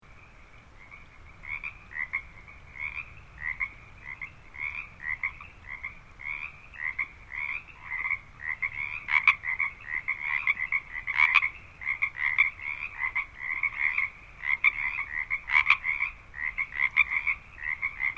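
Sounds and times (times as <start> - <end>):
frogs croaking in a dense chorus at hot springs: 0.1 - 18.1.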